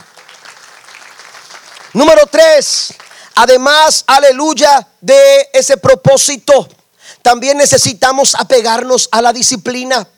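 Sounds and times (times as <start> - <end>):
audience applause: 0.0 - 3.4
speech: 2.0 - 10.1.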